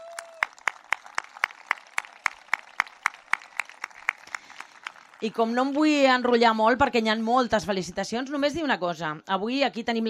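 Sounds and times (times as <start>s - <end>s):
audience applause: 0.0s - 6.3s
speech: 5.2s - 10.0s.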